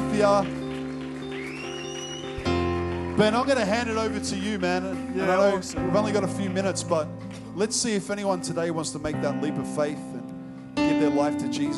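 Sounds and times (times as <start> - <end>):
crowd applauding: 0.0 - 8.3
speech: 0.2 - 0.6, 3.2 - 10.2, 11.0 - 11.7.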